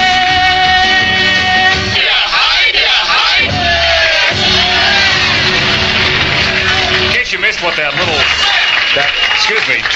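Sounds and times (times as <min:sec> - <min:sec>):
loud dense pop recording: 0:00.0 - 0:07.4
shouted vocal played backwards: 0:01.0 - 0:05.8
speech: 0:07.8 - 0:09.9.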